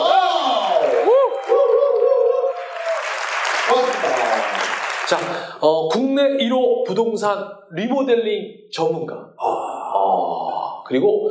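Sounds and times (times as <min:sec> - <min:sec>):
applause: 0:00.4 - 0:05.6
speech: 0:05.1 - 0:11.3.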